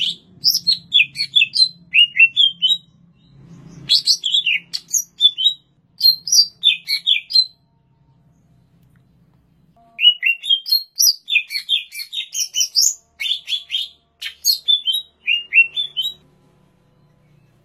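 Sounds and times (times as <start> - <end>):
greater green leafbird singing: 0.0 - 7.6, 10.0 - 16.2.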